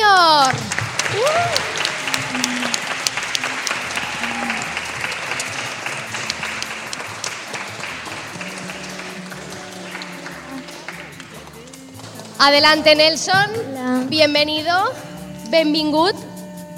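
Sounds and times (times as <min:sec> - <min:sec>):
audience applauding loudly: 0:00.2 - 0:12.4
speech: 0:12.4 - 0:16.2.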